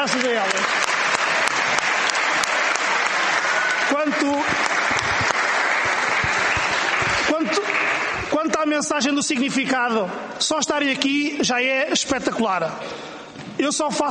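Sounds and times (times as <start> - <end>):
speech: 0.0 - 0.9, 8.8 - 14.0
audience applause: 0.0 - 8.7.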